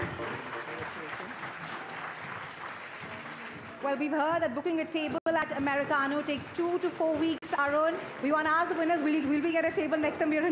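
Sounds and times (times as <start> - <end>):
audience applause for award winners: 0.0 - 4.0, 7.2 - 10.5
speech: 3.8 - 10.5.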